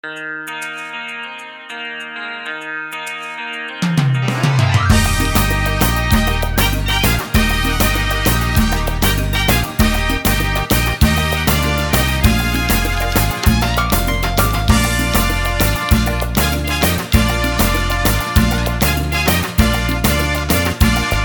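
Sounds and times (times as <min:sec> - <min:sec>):
rumba singback: 0:04.8 - 0:21.2.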